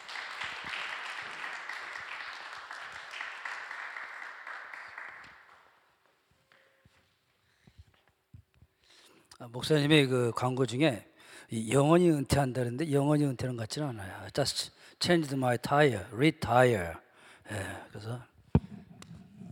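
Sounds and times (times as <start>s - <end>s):
audience applause welcoming a speaker: 0.0s - 5.7s
speech: 9.4s - 18.3s.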